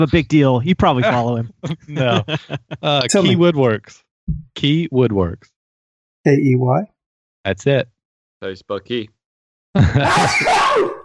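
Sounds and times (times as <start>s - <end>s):
speech: 0.0s - 5.5s, 6.2s - 9.2s, 9.8s - 11.0s
laughter: 0.8s - 3.7s, 9.8s - 10.5s
loud drawn-out groaning sneeze: 10.0s - 11.0s.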